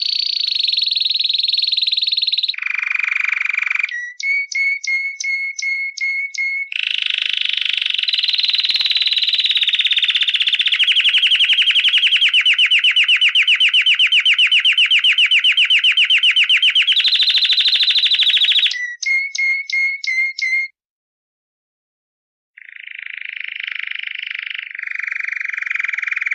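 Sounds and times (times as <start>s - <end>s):
canary song of buzzy trills and whistled notes: 0.0s - 20.8s, 22.6s - 26.3s.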